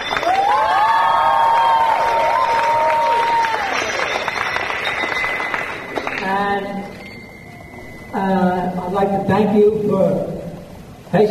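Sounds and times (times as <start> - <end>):
audience applause: 0.0 - 7.2
speech: 9.0 - 10.3, 11.1 - 11.3.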